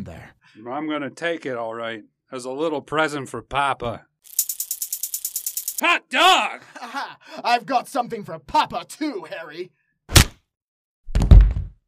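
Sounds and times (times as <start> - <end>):
speech: 0.0 - 4.4, 5.8 - 10.3
laughter: 6.3 - 7.7
punch to the jaw: 10.1 - 10.4.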